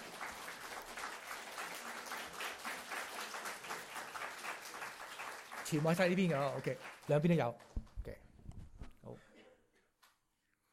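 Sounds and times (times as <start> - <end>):
crowd applauding: 0.0 - 7.8
speech: 5.7 - 8.2.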